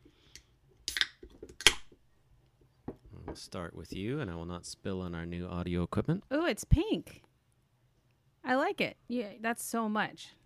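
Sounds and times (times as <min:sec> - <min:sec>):
drink can cracked open: 0:00.9 - 0:01.9
speech: 0:03.3 - 0:07.3, 0:08.5 - 0:10.4.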